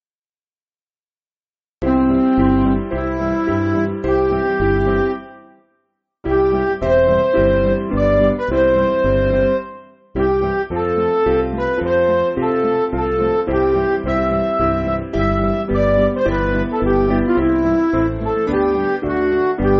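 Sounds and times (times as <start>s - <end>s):
MIDI backing music: 1.8s - 5.4s, 6.3s - 19.7s.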